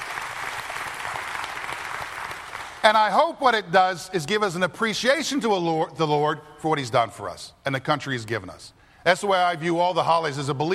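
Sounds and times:
audience applause: 0.0s - 2.8s
speech: 2.8s - 10.7s.

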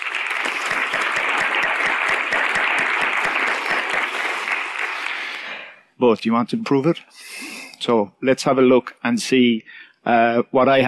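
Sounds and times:
audience applause: 0.0s - 5.7s
speech: 6.0s - 10.8s.

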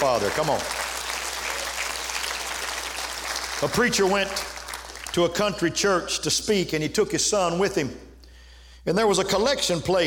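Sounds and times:
speech: 0.0s - 0.9s, 3.6s - 4.5s, 5.2s - 8.1s, 8.8s - 10.0s
audience clapping hands: 0.0s - 5.6s.

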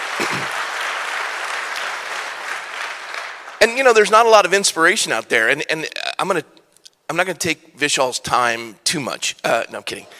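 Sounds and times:
audience applause: 0.0s - 3.8s
speech: 3.6s - 10.1s.

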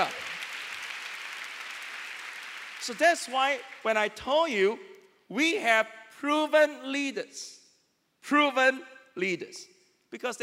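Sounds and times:
audience clapping: 0.0s - 4.0s
speech: 2.9s - 7.6s, 8.2s - 10.4s.

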